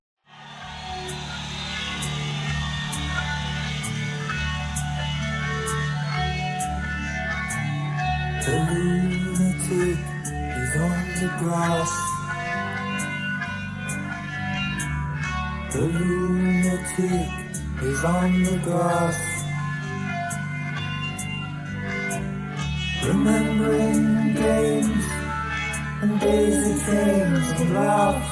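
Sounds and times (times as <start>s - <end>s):
backing track: 0.3s - 28.3s.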